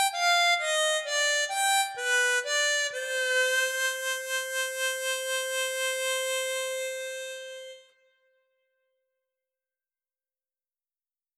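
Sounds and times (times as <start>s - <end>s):
harmonica: 0.0s - 8.2s.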